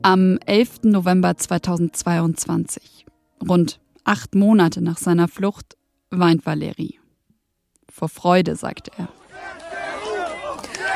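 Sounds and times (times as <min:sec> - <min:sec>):
speech: 0:00.0 - 0:07.0, 0:08.0 - 0:09.6
crowd cheering for Ukrainian soldiers in the centre of Kherson: 0:08.8 - 0:10.9.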